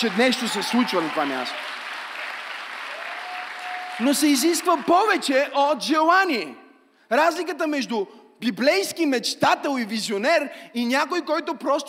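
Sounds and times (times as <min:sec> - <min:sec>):
speech: 0:00.0 - 0:01.9, 0:04.0 - 0:11.8
crowd applauding: 0:00.0 - 0:05.4.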